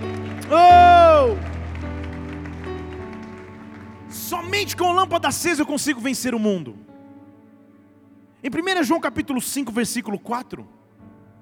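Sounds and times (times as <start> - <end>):
crowd clapping and cheering: 0.0 - 5.4
sustained keyboard chords: 0.0 - 8.4
speech: 4.4 - 6.9, 8.4 - 10.8.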